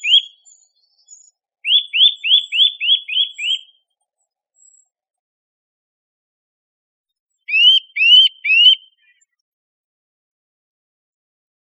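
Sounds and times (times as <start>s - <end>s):
Eurasian nuthatch (Sitta europaea) calls with clipped notes and rising whistles: 0.0s - 0.6s, 1.6s - 3.7s, 7.5s - 9.1s.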